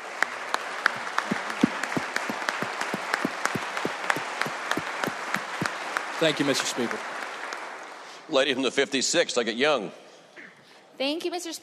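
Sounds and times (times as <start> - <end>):
audience applause in legislative chamber: 0.0 - 8.2
speech: 6.2 - 7.2, 8.3 - 10.0, 11.0 - 11.6.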